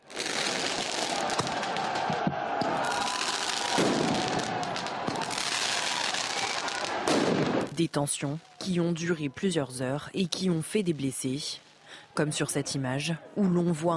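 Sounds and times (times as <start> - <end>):
firework mortars fired during street clashes: 0.1 - 7.7
speech: 7.8 - 11.6, 12.2 - 13.9.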